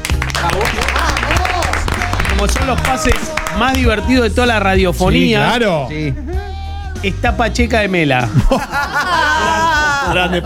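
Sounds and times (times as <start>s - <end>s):
applause with sharp irregular hand claps: 0.0s - 3.9s
steady voices: 0.0s - 10.4s
laughter: 0.2s - 4.4s, 5.1s - 7.2s, 8.2s - 10.4s
speech: 2.4s - 10.4s.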